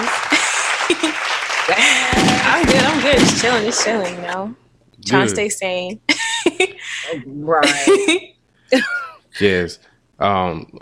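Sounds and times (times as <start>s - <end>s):
round of applause: 0.0s - 4.4s
laughter: 0.0s - 5.4s, 6.1s - 10.6s
speech: 0.9s - 10.8s.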